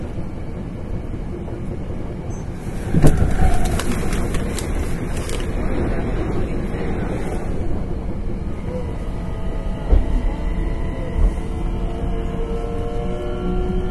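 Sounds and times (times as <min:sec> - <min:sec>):
sharp clicks from the rails: 0:00.0 - 0:11.6
9300 series express train running on the Kyoto Line: 0:00.0 - 0:13.9
clatter and bright squealing: 0:02.3 - 0:05.6.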